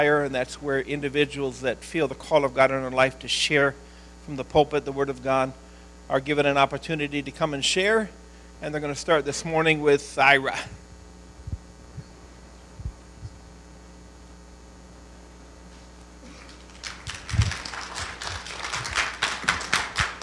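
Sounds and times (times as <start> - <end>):
speech: 0.0 - 10.8
audience clapping: 16.3 - 20.2.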